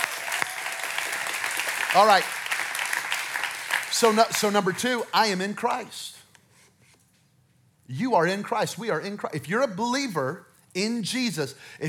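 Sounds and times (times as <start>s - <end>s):
audience clapping: 0.0s - 6.0s
speech: 2.0s - 2.4s, 4.0s - 6.2s, 7.9s - 11.8s.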